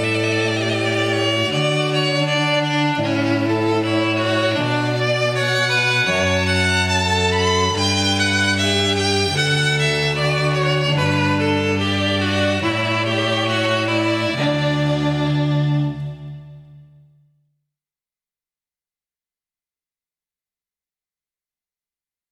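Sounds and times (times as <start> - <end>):
string trio playing a classical piece: 0.0 - 16.8.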